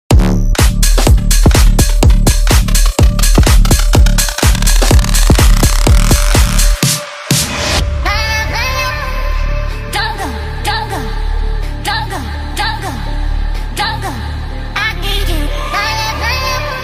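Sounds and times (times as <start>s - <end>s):
electro music: 0.1s - 16.8s.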